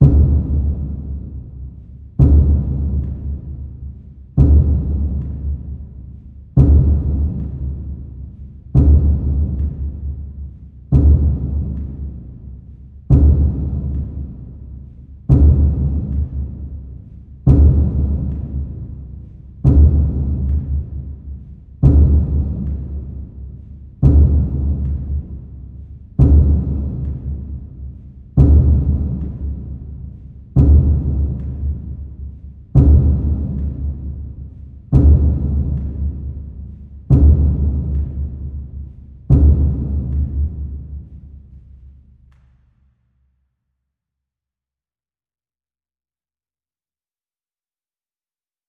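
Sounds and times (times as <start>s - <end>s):
bass drum: 0.0s - 42.5s.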